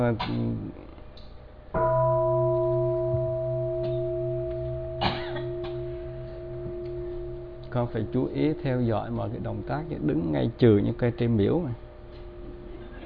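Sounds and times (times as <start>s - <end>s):
speech: 0.0s - 0.9s, 7.7s - 11.8s
temple bell being struck: 1.8s - 10.8s.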